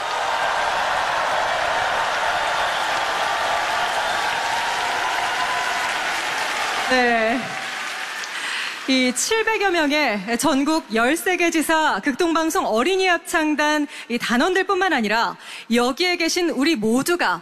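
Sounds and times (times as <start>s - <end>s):
audience applause: 0.0s - 10.9s
speech: 6.9s - 7.5s, 8.9s - 17.4s.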